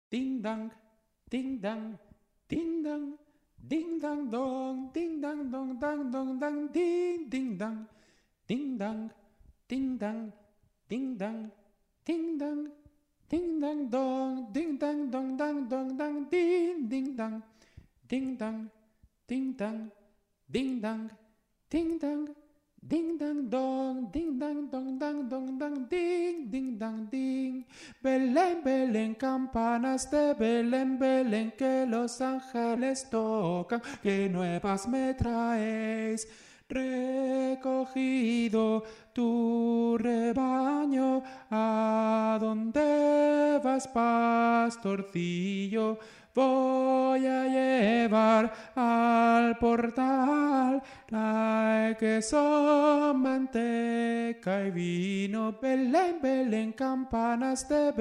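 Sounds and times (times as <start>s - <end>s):
tenor singing: 0.1s - 7.9s, 8.5s - 17.4s, 18.1s - 57.9s.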